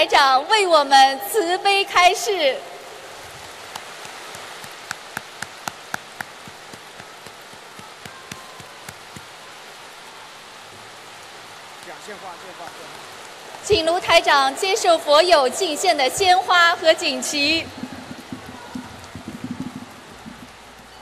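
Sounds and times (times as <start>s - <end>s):
speech: 0.0s - 2.7s, 12.1s - 13.0s, 13.7s - 17.9s
warm applause: 3.3s - 10.6s, 11.8s - 21.0s.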